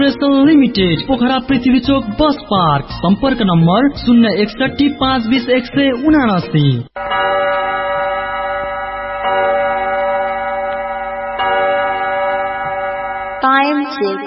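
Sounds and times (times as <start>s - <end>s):
speech: 0.0s - 7.2s, 14.0s - 14.2s
studio clock time signal chimes marking 7 pm: 7.0s - 14.2s.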